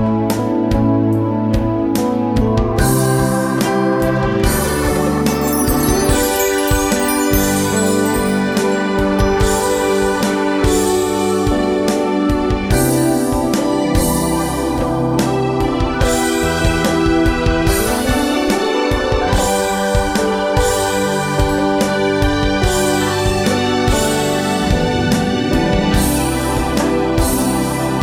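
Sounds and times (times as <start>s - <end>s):
keyboards: 0.1s - 28.0s.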